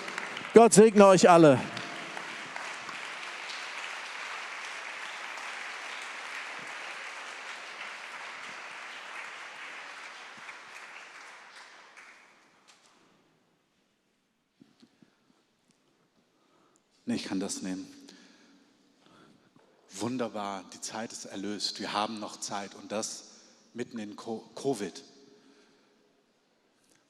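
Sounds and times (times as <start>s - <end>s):
audience applause: 0.0s - 12.5s
speech: 0.6s - 1.8s, 17.4s - 18.1s, 20.0s - 25.1s.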